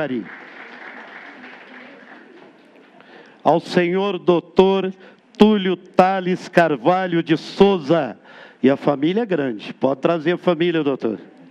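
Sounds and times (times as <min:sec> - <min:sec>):
speech: 0:00.0 - 0:00.4, 0:03.4 - 0:11.3
audience applause at a ceremony honouring a farmer in Araguari: 0:00.0 - 0:03.0.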